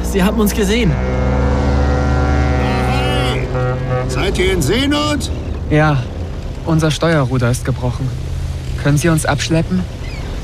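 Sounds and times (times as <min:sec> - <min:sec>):
coast guard boat engine drone at sea: 0:00.0 - 0:10.4
speech: 0:00.1 - 0:01.2, 0:04.1 - 0:08.2, 0:08.8 - 0:10.0.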